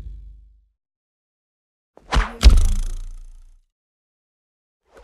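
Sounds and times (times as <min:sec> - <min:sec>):
knife flying: 0:02.1 - 0:03.5
knife impact: 0:02.1 - 0:03.5.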